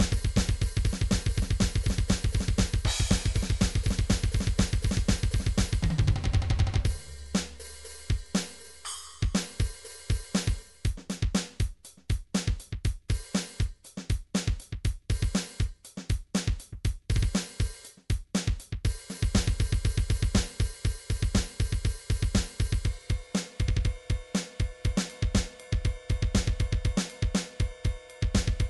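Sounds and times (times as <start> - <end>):
drums and percussion: 0.0 - 28.6.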